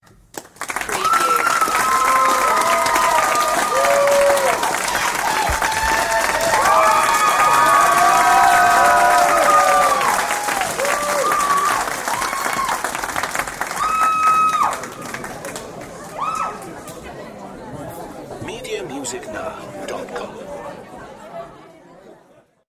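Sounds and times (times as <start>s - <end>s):
audience applause: 0.3s - 16.8s.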